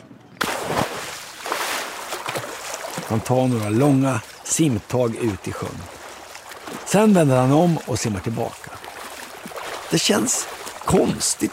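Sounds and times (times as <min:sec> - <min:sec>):
splash of person jumping into water: 0:00.4 - 0:03.1
speech: 0:03.1 - 0:06.0, 0:06.9 - 0:08.8, 0:09.9 - 0:11.5.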